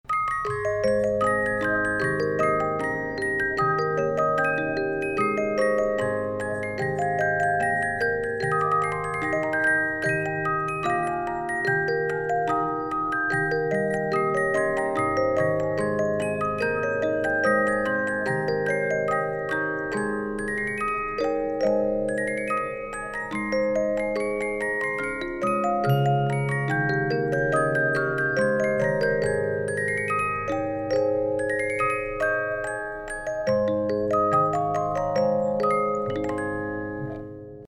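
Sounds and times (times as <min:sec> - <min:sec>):
SANKYO music box melody: 0:00.0 - 0:37.6.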